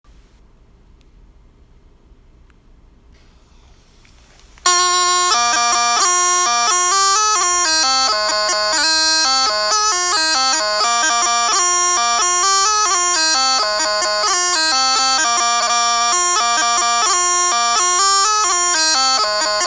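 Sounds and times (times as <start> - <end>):
pipers playing bagpipes: 4.6 - 19.6.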